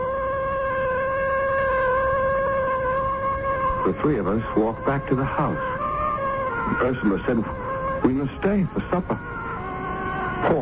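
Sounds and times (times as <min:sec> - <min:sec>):
cat meowing: 0:00.0 - 0:10.6
speech: 0:03.8 - 0:05.8, 0:06.7 - 0:09.4, 0:10.4 - 0:10.6.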